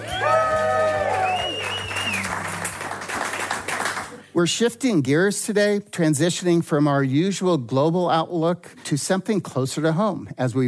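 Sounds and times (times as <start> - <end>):
high whoops: 0.0 - 2.4
live audience of Fellowship Bible Church staff applauding: 0.0 - 4.3
speech: 4.4 - 10.6.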